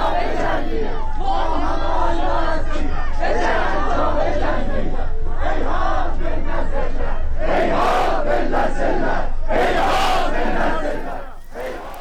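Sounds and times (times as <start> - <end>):
crowd yelling: 0.0 - 1.1, 9.6 - 11.9
crowd chanting protest slogans in Turkish in Tabriz: 0.0 - 11.9.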